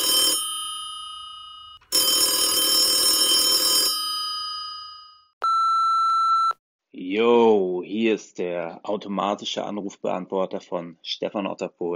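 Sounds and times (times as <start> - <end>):
telephone ringing on an outgoing call: 0.0 - 6.6
speech: 7.1 - 11.9.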